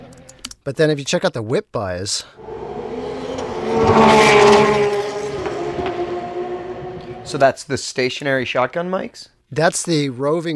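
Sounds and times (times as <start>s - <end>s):
speech: 0.7s - 2.6s, 7.3s - 10.5s
car engine revving with gear shift: 2.4s - 7.4s.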